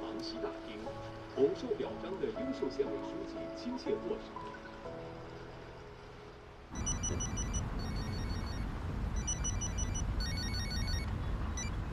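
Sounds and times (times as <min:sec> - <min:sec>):
hiss: 0:00.0 - 0:11.9
phone ringing with electronic trill: 0:06.7 - 0:11.8.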